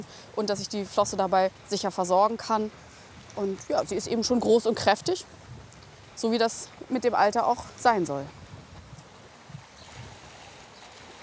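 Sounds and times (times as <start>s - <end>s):
speech: 0.0s - 5.4s, 6.2s - 8.4s
water let into a release pool: 9.8s - 11.2s.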